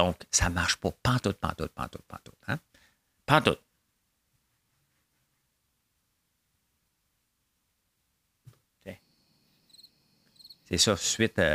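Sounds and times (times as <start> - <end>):
speech: 0.0 - 2.7, 3.3 - 3.6, 10.7 - 11.5
cricket chirping: 8.9 - 11.0.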